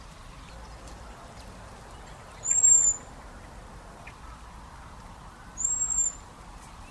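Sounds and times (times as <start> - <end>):
low background hiss: 0.0 - 6.8
common blackbird high whistled notes: 2.4 - 3.1, 5.6 - 6.2.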